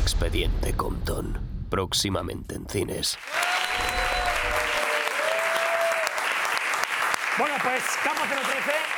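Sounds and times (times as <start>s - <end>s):
speech: 0.1s - 3.9s, 7.4s - 8.9s
audience applause: 3.1s - 8.9s.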